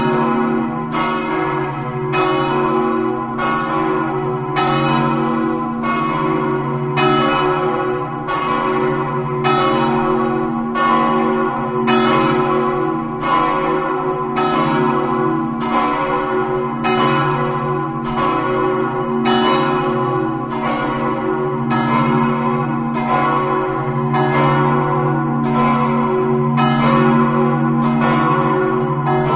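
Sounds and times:
church bells in San Daniele: 0:00.0 - 0:29.3.

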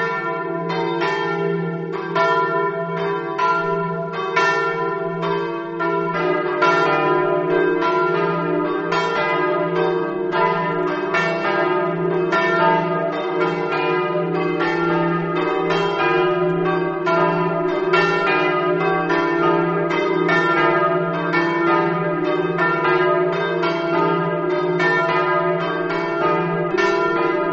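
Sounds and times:
bells in Jalmicco: 0:00.0 - 0:27.5.

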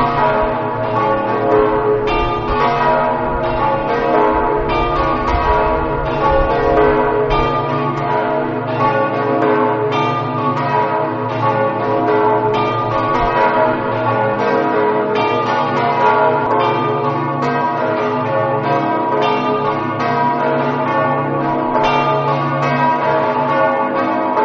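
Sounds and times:
church bells ringing in Tricesimo: 0:00.0 - 0:24.4.

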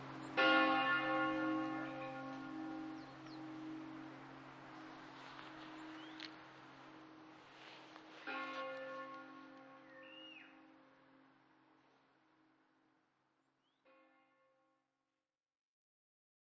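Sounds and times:
bells ringing: 0:00.0 - 0:11.5.

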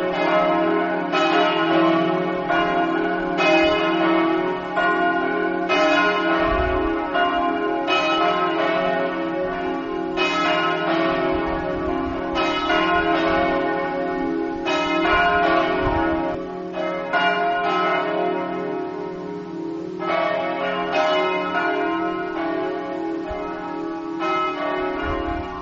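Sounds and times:
bells in Monfalcone: 0:00.0 - 0:25.6.

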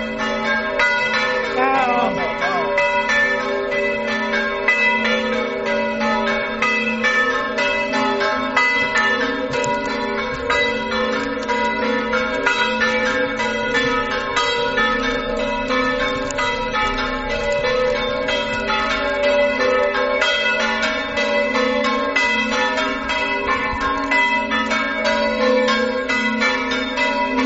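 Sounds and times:
bells ringing: 0:00.0 - 0:27.4.

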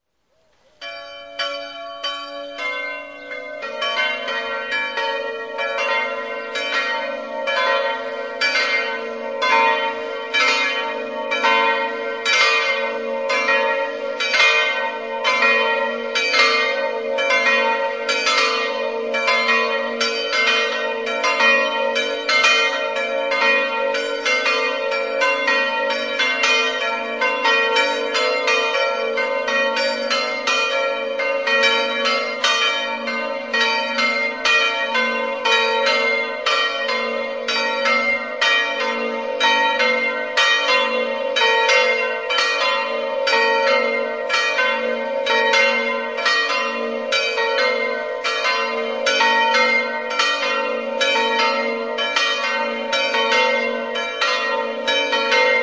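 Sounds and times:
bells ringing: 0:00.8 - 0:55.6.

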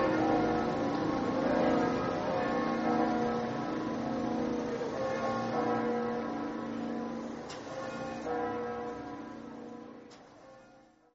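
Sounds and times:
bells ringing in Tolmezzo: 0:00.0 - 0:10.8.

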